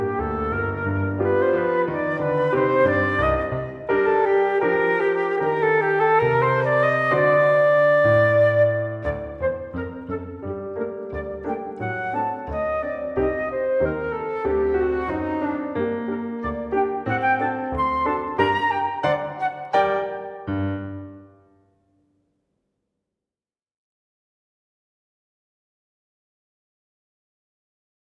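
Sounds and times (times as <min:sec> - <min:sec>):
tango music: 0:00.0 - 0:21.3.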